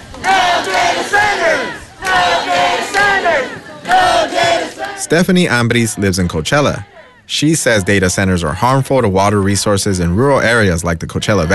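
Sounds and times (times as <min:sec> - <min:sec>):
large crowd of protesters chanting in unison at City Hall: 0:00.0 - 0:08.3
speech: 0:05.0 - 0:11.5.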